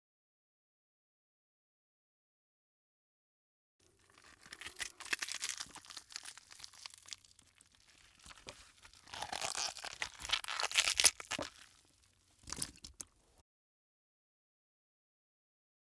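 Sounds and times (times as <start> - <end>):
gore bursting horror body tear: 4.0 - 13.3.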